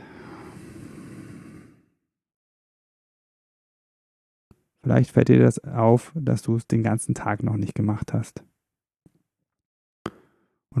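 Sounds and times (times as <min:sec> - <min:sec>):
deep breath in and out: 0:00.0 - 0:02.0
speech: 0:04.8 - 0:08.5.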